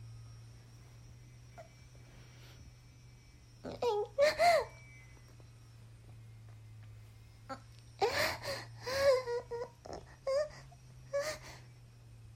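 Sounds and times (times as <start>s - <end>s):
22-year-old woman moaning and climaxing: 3.6s - 4.9s, 7.5s - 11.5s.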